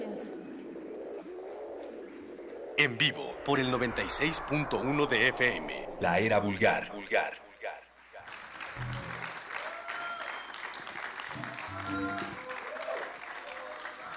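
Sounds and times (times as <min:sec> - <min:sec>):
speech: 0:02.8 - 0:07.4
audience applause: 0:08.0 - 0:14.1.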